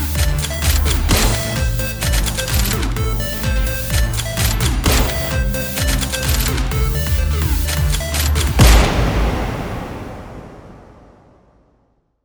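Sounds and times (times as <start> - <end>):
fast flickering sound: 0.0 - 9.2
pistol sound: 0.0 - 9.2
synthesized pulse: 0.0 - 11.4.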